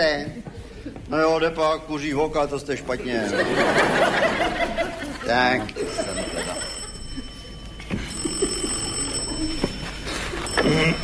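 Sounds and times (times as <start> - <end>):
speech: 1.1 - 6.5
laughter: 2.9 - 11.0
telephone ringing with high-pitched electric bell tone: 5.8 - 11.0.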